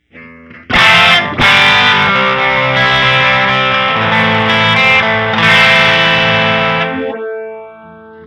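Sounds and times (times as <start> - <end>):
phaser envelope effect: 0.7 - 8.1.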